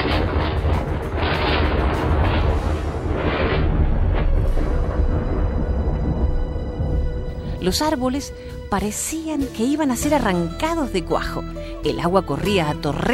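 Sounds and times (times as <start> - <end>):
thunderstorm thunder: 0.0 - 8.8
speech: 7.7 - 13.1.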